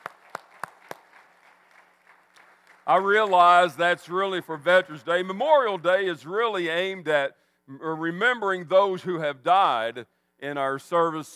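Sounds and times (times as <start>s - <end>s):
sparse hand claps in tribute to military veterans: 0.0s - 3.0s
speech: 2.9s - 11.3s.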